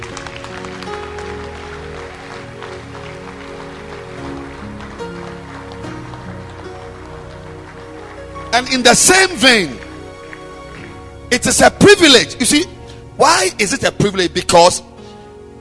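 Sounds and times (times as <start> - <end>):
audience clapping: 0.0 - 12.2
sustained musical tones: 0.0 - 14.4
speech: 8.6 - 9.8, 11.3 - 14.9.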